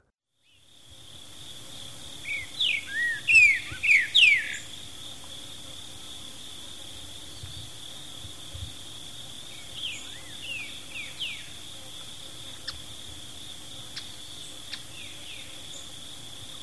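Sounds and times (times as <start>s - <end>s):
streaked saltator singing sweet whistled slurs in Ecuador: 0.8s - 16.6s.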